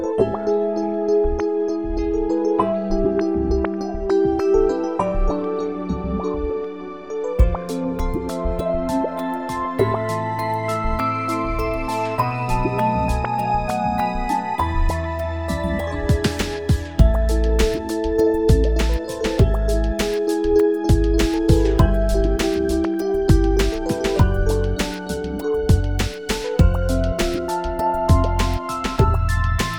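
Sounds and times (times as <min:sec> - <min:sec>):
sad music: 0:00.1 - 0:29.7.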